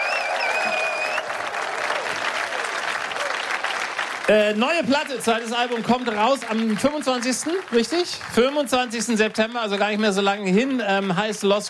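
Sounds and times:
whistles and cheers: 0.0 - 3.6
audience applause: 0.0 - 11.6
speech: 4.3 - 11.6.

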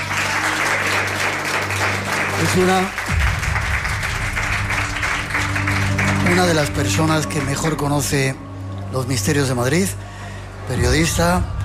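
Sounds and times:
audience applauding: 0.0 - 8.2
speech: 2.6 - 3.1, 6.4 - 10.1, 10.7 - 11.6.

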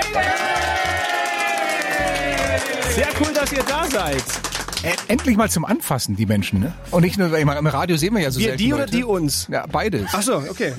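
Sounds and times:
crowd of visitors cheering and whooping: 0.0 - 3.7
speech: 3.0 - 10.7.

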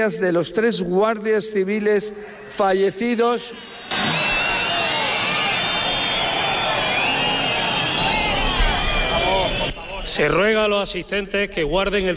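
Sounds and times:
speech: 0.0 - 4.1, 10.1 - 12.1
large crowd whistling: 2.8 - 10.9
large crowd booing and jeering: 3.6 - 10.3.

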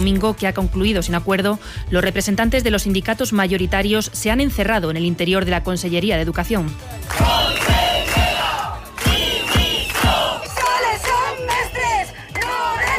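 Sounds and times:
speech: 0.0 - 7.6
protesting teachers shouting slogans outside a building: 7.1 - 12.9.

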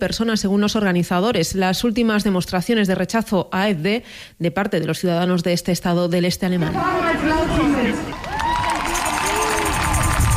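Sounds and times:
speech: 0.0 - 8.2
crowd applauding in front of a stage: 7.9 - 10.3.

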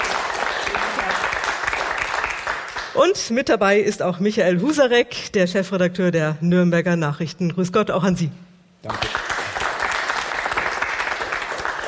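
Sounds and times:
studio audience applauding: 0.0 - 3.0, 8.9 - 11.8
speech: 3.0 - 9.2.

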